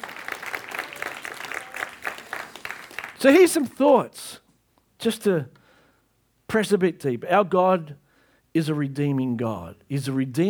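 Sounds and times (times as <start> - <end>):
audience applause: 0.0 - 3.6
speech: 3.2 - 4.4, 5.0 - 5.6, 6.5 - 10.4.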